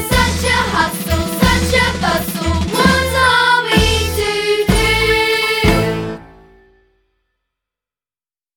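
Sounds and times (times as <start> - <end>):
vocals: 0.0 - 6.3.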